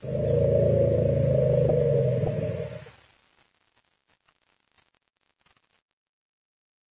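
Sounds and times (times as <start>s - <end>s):
elephants roaring in a family greeting: 0.0s - 2.9s.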